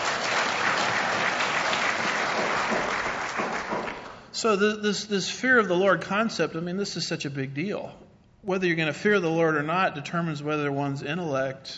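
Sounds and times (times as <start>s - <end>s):
audience clapping: 0.0s - 4.3s
speech: 4.4s - 11.7s.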